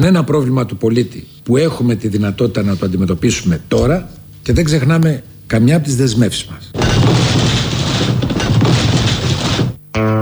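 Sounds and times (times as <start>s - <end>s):
speech: 0.0s - 7.5s
building collapsing: 6.8s - 9.8s.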